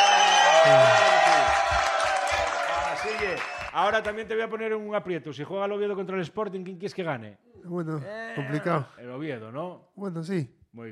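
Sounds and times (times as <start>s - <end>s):
audience whooping and shouting: 0.0s - 3.7s
audience applause: 0.0s - 4.2s
speech: 0.6s - 1.0s, 3.4s - 10.9s.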